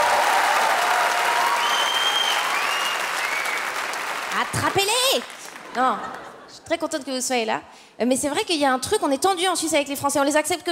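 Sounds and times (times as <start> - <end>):
audience applause: 0.0 - 6.4
speech: 4.4 - 10.7.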